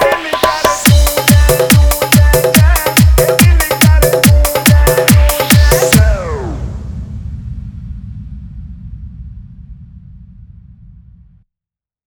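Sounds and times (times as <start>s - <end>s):
dholki bass dance mix: 0.0s - 6.7s.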